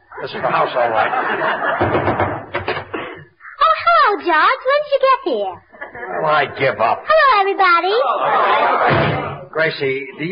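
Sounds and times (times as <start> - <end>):
laughter: 0.0 - 4.0, 5.6 - 7.0, 8.0 - 10.3
speech: 0.2 - 2.2, 4.1 - 10.3
firm knocks on a door: 1.8 - 2.9.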